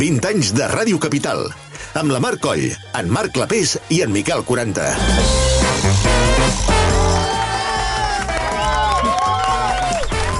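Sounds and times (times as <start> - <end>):
speech: 0.0 - 6.7
live applause: 6.8 - 10.3.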